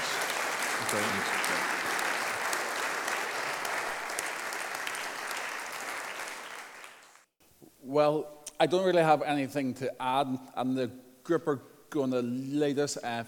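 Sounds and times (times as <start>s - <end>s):
crowd applause: 0.0s - 7.3s
speech: 0.9s - 1.7s, 7.9s - 13.2s.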